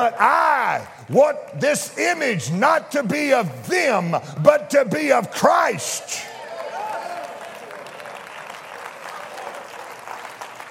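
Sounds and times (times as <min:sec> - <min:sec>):
speech: 0:00.0 - 0:06.4
crowd clapping: 0:06.2 - 0:10.7.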